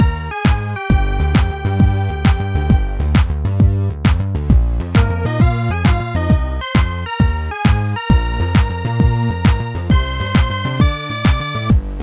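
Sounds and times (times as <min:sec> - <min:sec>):
music in game: 0:00.0 - 0:03.7, 0:04.8 - 0:11.8.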